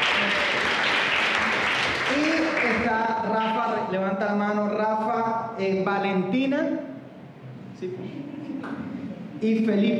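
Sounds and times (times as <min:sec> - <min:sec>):
audience applause: 0:00.0 - 0:02.8
speech: 0:03.0 - 0:06.9, 0:07.8 - 0:09.9.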